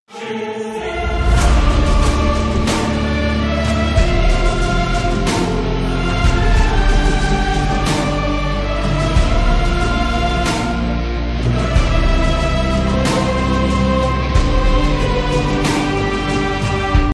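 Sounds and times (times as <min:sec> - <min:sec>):
orchestral music: 0:00.2 - 0:17.1.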